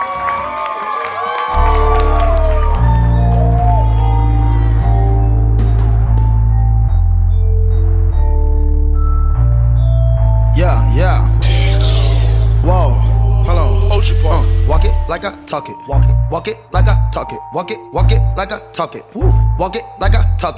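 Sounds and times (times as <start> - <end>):
large crowd clapping and cheering: 0.0 - 9.9
booming bass-heavy music: 1.5 - 20.5
speech: 15.5 - 20.5.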